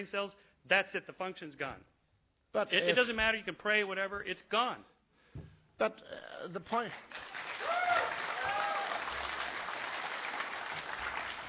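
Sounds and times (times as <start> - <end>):
speech: 0.0 - 1.9, 2.5 - 7.8
crowd clapping: 6.9 - 11.4
whoops and cheers: 7.5 - 9.4.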